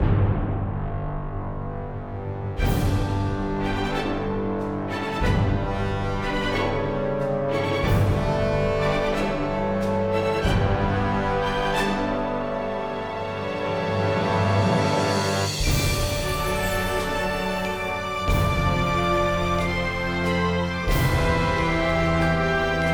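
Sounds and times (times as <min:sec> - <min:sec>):
cinematic music: 0:00.0 - 0:22.9.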